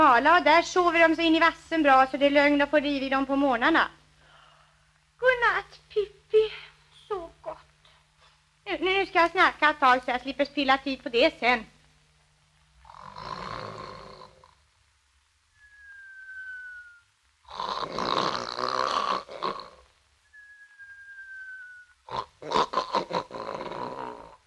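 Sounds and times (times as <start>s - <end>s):
speech: 0.2s - 4.0s, 5.2s - 7.2s, 8.7s - 11.7s
sleeping child snoring with feet on the pillow: 12.8s - 14.6s, 16.5s - 19.9s, 21.0s - 24.4s
thin high whistle: 15.5s - 17.2s, 20.2s - 22.0s.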